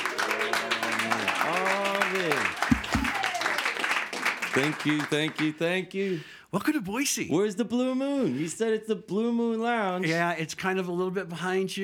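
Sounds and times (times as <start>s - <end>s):
voices whooping and cheering: 0.0s - 3.8s
crowd clapping: 0.0s - 5.7s
speech: 4.6s - 11.8s.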